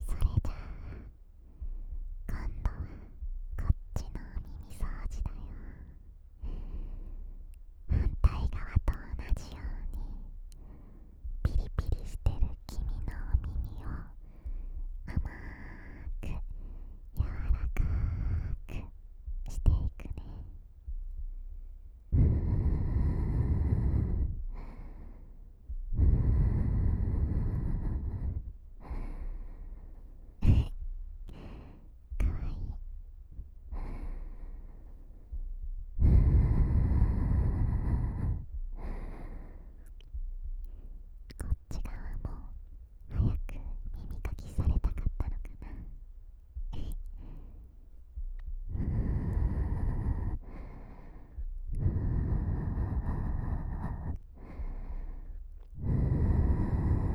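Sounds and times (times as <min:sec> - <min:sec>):
older sister breathing sweetly: 0:00.0 - 0:57.1.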